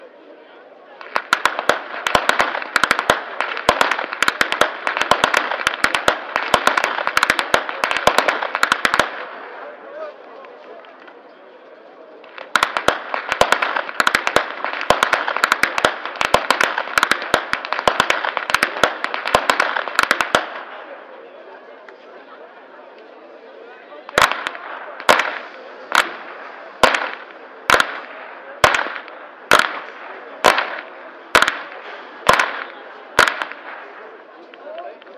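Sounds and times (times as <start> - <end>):
whip cracking in Flachgau: 1.0 - 9.3, 12.2 - 20.6, 24.2 - 33.8.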